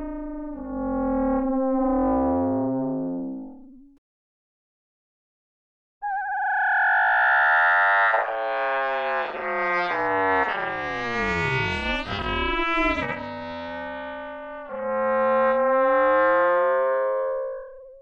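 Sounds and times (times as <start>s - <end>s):
FM synth horn: 0.0s - 4.0s, 7.1s - 18.0s.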